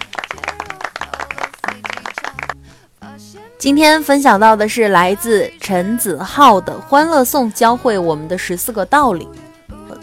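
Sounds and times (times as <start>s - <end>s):
applause: 0.0s - 2.6s
speech: 3.6s - 9.4s.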